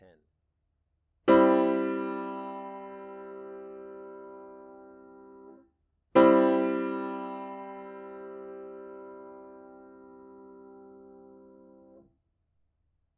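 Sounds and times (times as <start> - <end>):
chords: 1.3 - 5.5, 6.2 - 11.9.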